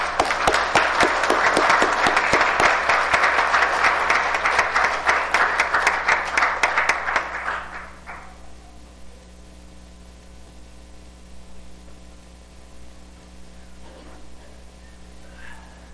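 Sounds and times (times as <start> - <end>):
audience applause: 0.0 - 8.4.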